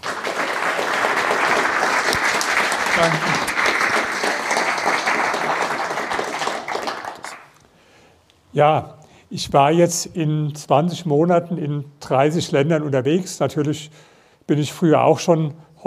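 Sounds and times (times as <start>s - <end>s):
audience applause: 0.0s - 7.6s
speech: 3.0s - 3.5s, 8.6s - 15.8s.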